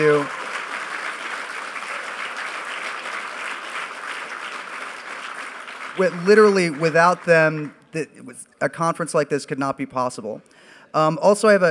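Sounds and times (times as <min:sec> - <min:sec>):
speech: 0:00.0 - 0:00.4, 0:06.0 - 0:11.6
sizable crowd applauding: 0:00.0 - 0:07.6.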